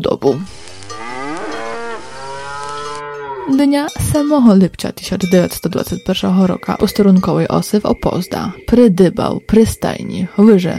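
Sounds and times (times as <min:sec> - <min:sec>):
speech: 0:00.2 - 0:00.6, 0:03.5 - 0:10.7
cow mooing: 0:00.8 - 0:03.7.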